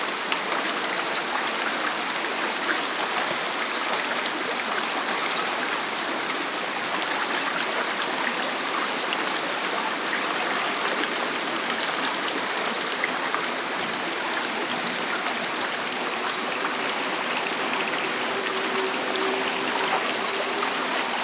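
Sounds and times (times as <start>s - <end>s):
water flowing: 0.0s - 21.2s
white-throated dipper singing: 18.4s - 18.8s.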